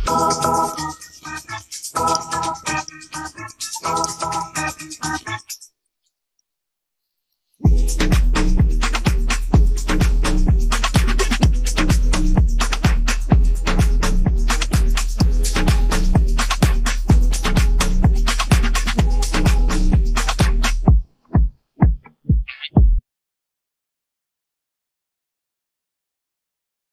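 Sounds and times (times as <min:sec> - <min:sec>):
rap accompaniment beat: 0:00.0 - 0:05.6, 0:07.6 - 0:23.0.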